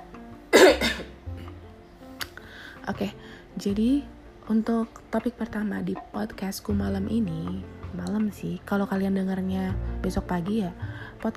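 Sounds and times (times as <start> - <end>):
person coughing: 0.5 - 1.1
speech: 2.9 - 11.3.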